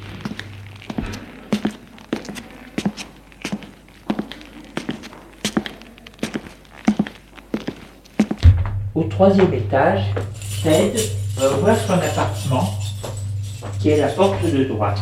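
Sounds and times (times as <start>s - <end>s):
footsteps climbing stairs: 0.0s - 15.0s
speech: 9.0s - 12.8s, 13.8s - 15.0s.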